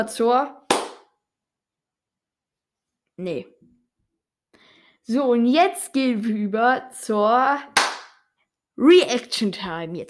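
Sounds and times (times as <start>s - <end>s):
speech: 0.0s - 0.6s, 3.2s - 3.6s, 5.0s - 7.8s, 8.8s - 10.0s
single hand clap as sync marker: 0.7s - 1.1s, 7.8s - 8.2s.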